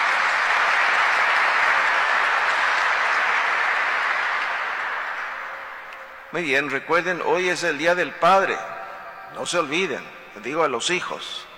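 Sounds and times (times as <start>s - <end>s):
audience applause: 0.0s - 6.3s
speech: 6.3s - 8.7s, 9.3s - 11.5s.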